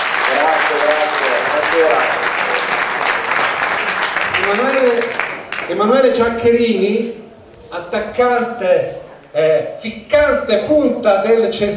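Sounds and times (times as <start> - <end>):
audience applause: 0.0 - 5.9
speech: 5.8 - 7.2, 7.9 - 11.7.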